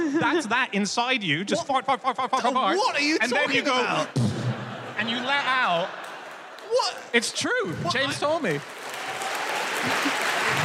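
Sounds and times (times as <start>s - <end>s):
laughter: 0.0s - 0.6s, 2.0s - 8.4s, 9.8s - 10.6s
speech: 0.2s - 6.0s, 6.7s - 8.8s
audience applause: 5.2s - 10.6s.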